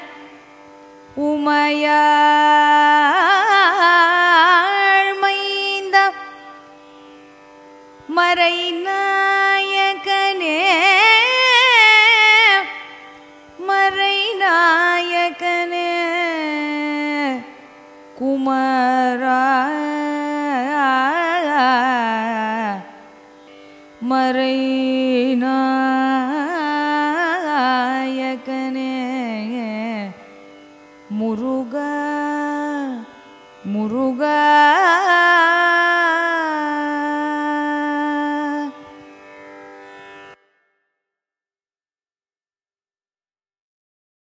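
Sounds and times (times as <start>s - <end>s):
person singing a Carnatic song in raga Surutti, Adi tala: 1.1s - 6.6s, 8.1s - 23.1s, 24.0s - 30.3s, 31.1s - 38.9s.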